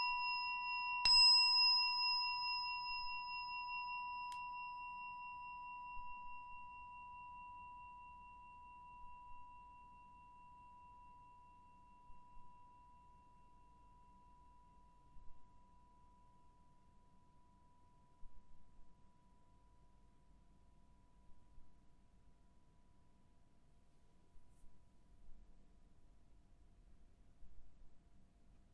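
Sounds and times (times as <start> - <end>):
singing bowl: 0.0 - 21.6.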